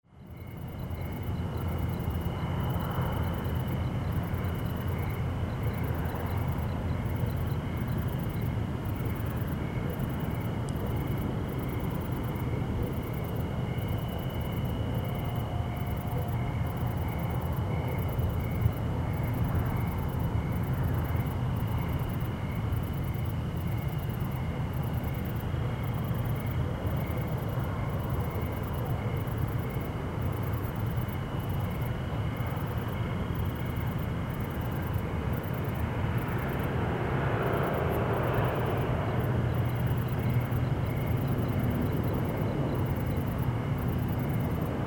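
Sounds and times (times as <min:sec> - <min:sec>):
desert night ambience in Pinyon Hills NM: 0:00.0 - 0:44.8.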